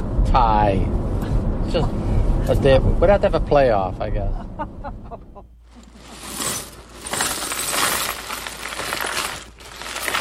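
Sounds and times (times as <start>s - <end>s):
speech: 0.3s - 1.0s, 1.7s - 5.2s
glass pieces clinking while being sorted: 5.9s - 10.1s.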